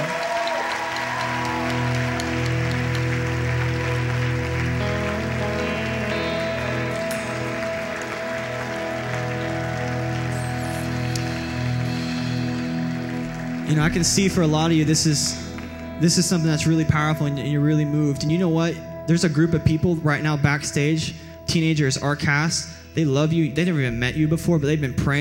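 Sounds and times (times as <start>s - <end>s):
audience clapping: 0.0s - 17.1s
low musical tones: 0.0s - 25.1s
speech: 13.7s - 25.1s.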